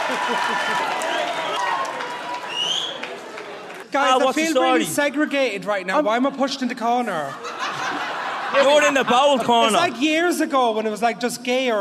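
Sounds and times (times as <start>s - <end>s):
laughter: 0.0s - 1.4s, 7.0s - 10.2s
comedy show audience applause greeting the final guest: 0.0s - 4.8s
speech: 0.1s - 1.2s, 3.9s - 7.5s, 8.5s - 11.7s.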